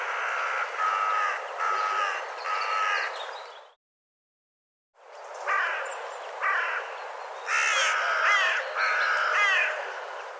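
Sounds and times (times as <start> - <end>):
bird giving harsh nasal cawing calls: 0.0 - 3.2, 5.4 - 6.9, 7.5 - 10.0.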